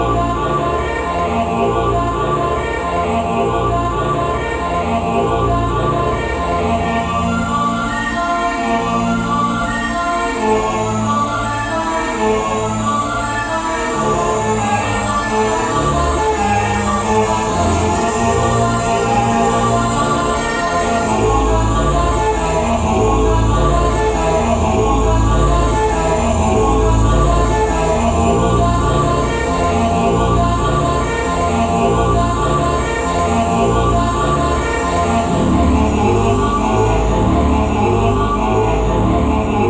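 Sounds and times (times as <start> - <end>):
choir singing: 0.0 - 39.6.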